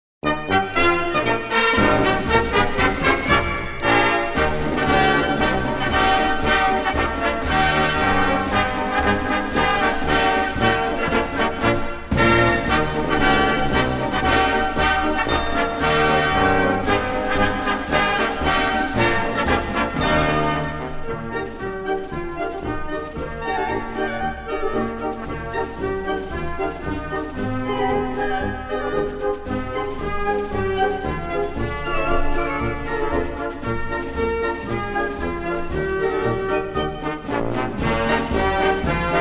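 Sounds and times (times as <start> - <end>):
Christmas song: 0.2 - 39.1.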